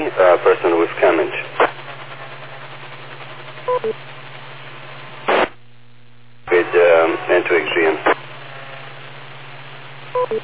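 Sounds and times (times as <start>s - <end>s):
short burst of static: 0.0s - 10.4s
steady radio hiss and hum: 0.0s - 10.4s
speech: 0.1s - 1.4s
repeater courtesy beep: 3.7s - 4.0s, 10.2s - 10.4s.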